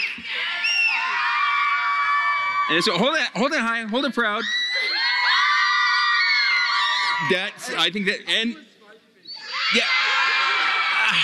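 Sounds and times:
crowd of children cheering and shrieking: 0.0 - 3.0, 4.5 - 7.3, 9.4 - 11.2
speech: 2.7 - 4.9, 7.2 - 8.7, 9.7 - 9.9.

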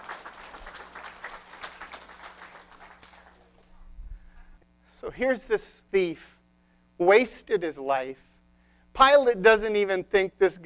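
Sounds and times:
audience clapping: 0.0 - 3.8
speech: 5.0 - 6.4, 7.0 - 8.2, 9.0 - 10.6.

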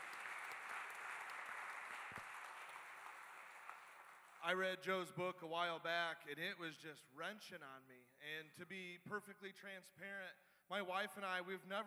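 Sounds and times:
crowd clapping: 0.0 - 4.6
speech: 4.4 - 11.8.

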